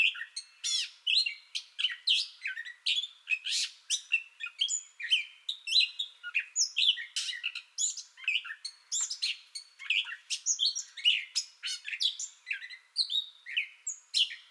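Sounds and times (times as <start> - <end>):
Gray catbird song: 0.0 - 14.4.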